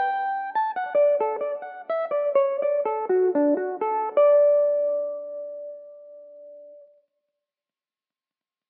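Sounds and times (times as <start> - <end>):
Irish mandolin playing in D major: 0.0 - 6.8.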